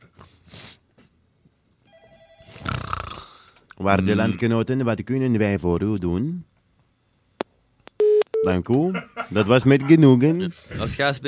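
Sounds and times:
telephone ringing on an outgoing call to a radio station: 1.9 - 2.6
speech: 3.8 - 6.5, 8.4 - 11.2.

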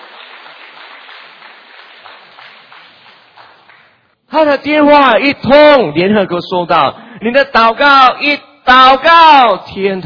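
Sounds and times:
audience applauding: 0.0 - 4.0
speech: 4.4 - 10.0.

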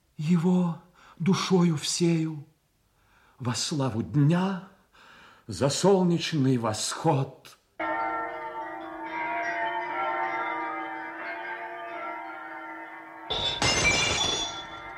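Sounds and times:
speech: 0.2 - 2.5, 3.4 - 4.7, 5.5 - 7.6
church bells ringing for Easter: 7.8 - 14.9
loud crash: 13.3 - 14.9.

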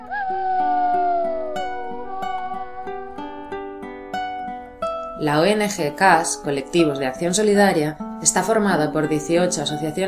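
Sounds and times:
long wavering howl: 0.0 - 4.6
speech: 5.2 - 10.0.

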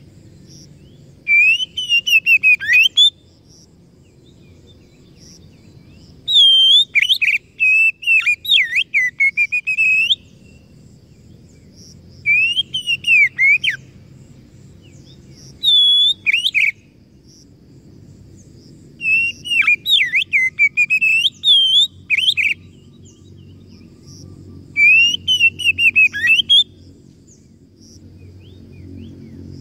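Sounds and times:
Oriental magpie-robin song: 0.8 - 3.2, 4.3 - 11.2, 12.2 - 13.9, 14.8 - 16.9, 19.0 - 27.5.

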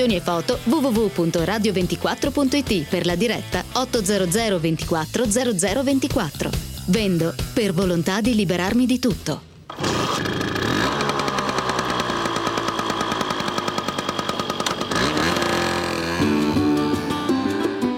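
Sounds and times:
speech: 0.0 - 9.9
small scooter engine revving: 9.7 - 17.3.

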